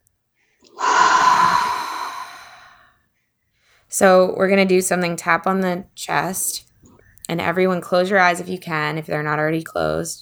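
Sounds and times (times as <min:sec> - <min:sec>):
deep breath: 0:00.7 - 0:02.9
speech: 0:04.0 - 0:06.7, 0:07.3 - 0:10.2.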